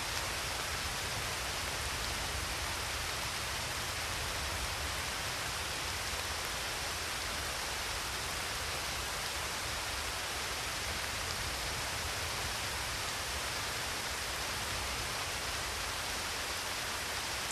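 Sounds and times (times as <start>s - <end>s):
rain in the Alps: 0.0s - 17.5s.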